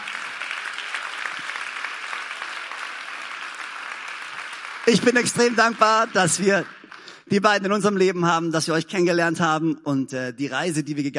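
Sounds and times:
audience applause: 0.0s - 7.3s
speech: 4.9s - 11.1s.

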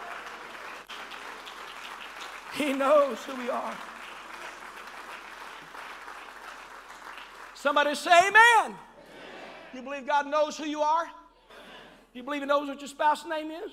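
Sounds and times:
audience clapping hands: 0.0s - 8.7s
speech: 2.6s - 4.0s, 7.6s - 8.8s, 9.7s - 11.2s, 12.2s - 13.7s.

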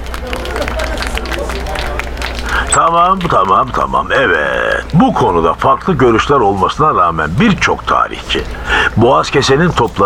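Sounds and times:
laughter: 0.0s - 4.9s
crowd applause: 0.0s - 9.2s
murmur of voices: 0.0s - 10.0s
speech: 2.8s - 10.0s.

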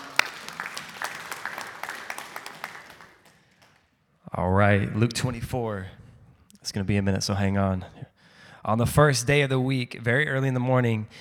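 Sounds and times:
audience applause: 0.0s - 3.8s
speech: 4.3s - 6.0s, 6.6s - 11.1s.

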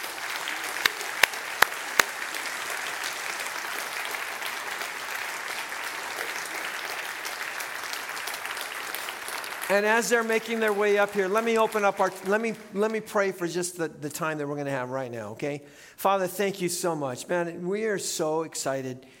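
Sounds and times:
church congregation applauding guest speakers: 0.0s - 13.1s
speech: 9.7s - 19.1s.

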